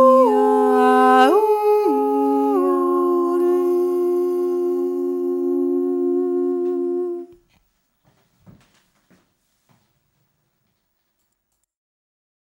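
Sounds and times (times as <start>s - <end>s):
person yodelling: 0.0s - 7.3s.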